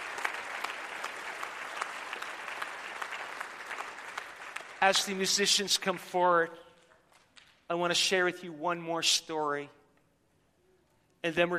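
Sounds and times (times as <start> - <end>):
audience giving one loud clap: 0.0 - 6.0
speech: 4.8 - 6.6, 7.7 - 9.8, 11.2 - 11.5.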